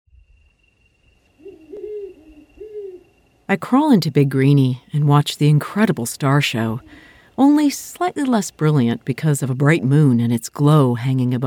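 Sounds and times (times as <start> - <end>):
thin steady high tone: 0.1 - 10.3
owl giving soft low hoots: 0.9 - 3.5, 6.2 - 7.3
speech: 3.5 - 11.4.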